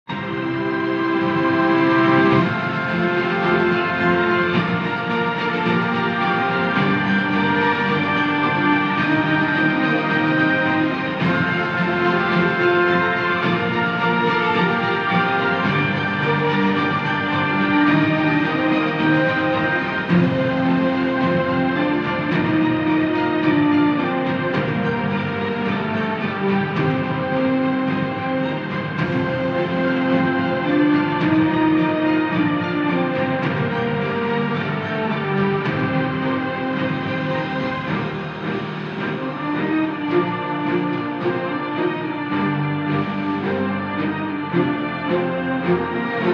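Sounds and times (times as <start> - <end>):
instrumental music: 0.0 - 46.3.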